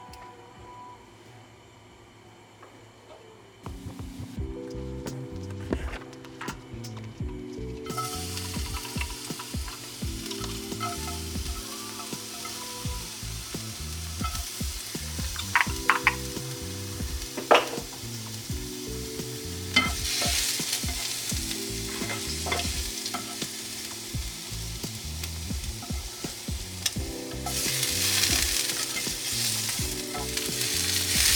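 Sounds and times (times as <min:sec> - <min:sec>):
music: 0:03.1 - 0:31.3
garlic and ginger frying in a little oil in a pot: 0:07.9 - 0:31.3.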